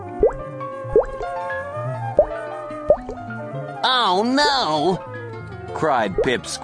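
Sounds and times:
water dripping from a leak: 0.0 - 1.4, 2.2 - 3.2
speech: 3.9 - 5.1, 5.8 - 6.6.

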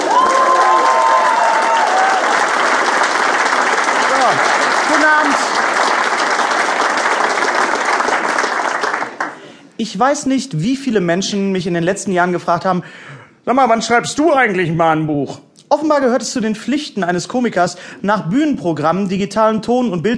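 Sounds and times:
audience applause at live comedy show: 0.0 - 9.8
speech: 9.8 - 20.1.

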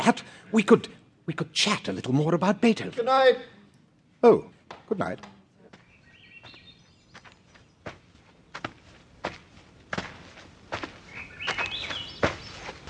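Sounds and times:
speech: 0.0 - 3.6, 4.2 - 5.4
birds chirping: 5.6 - 8.8, 10.8 - 12.8
footsteps of a lone walker: 5.7 - 12.8.

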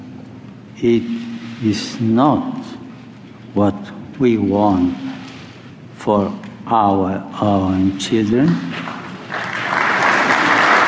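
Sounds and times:
speech: 0.8 - 2.8, 3.6 - 5.1, 6.0 - 8.8
crowd applause: 8.5 - 10.8.

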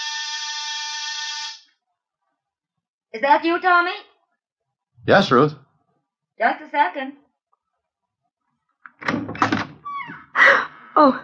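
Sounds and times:
apartment door buzzer ringing: 0.0 - 1.7
speech: 3.1 - 4.1, 5.0 - 5.6, 6.4 - 7.2, 11.0 - 11.2.

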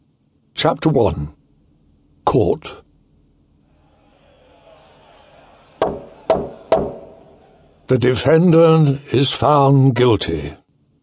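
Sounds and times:
speech: 0.6 - 1.4, 2.3 - 2.8, 7.9 - 10.6
laughter: 3.8 - 8.0
gavel banging on wood in a courtroom: 5.8 - 7.1.

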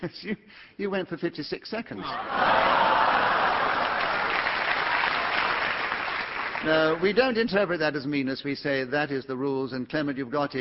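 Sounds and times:
speech: 0.0 - 3.5, 6.6 - 10.5
audience applause: 2.2 - 7.3.

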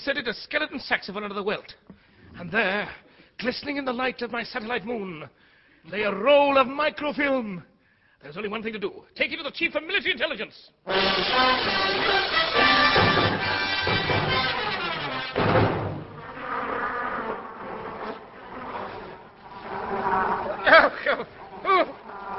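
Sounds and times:
speech: 0.0 - 12.4, 20.7 - 22.3
horse flies buzzing: 11.0 - 22.3
dull thump: 15.4 - 16.1.

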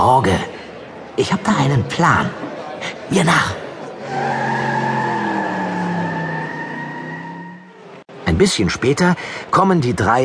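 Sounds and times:
speech: 0.1 - 0.6, 1.2 - 3.6, 8.4 - 10.2
race cars on a racetrack: 3.7 - 8.2.

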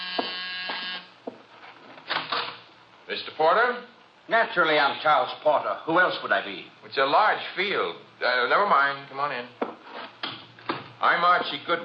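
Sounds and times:
door buzzer: 0.0 - 1.2
speech: 3.1 - 9.6, 11.0 - 11.8.

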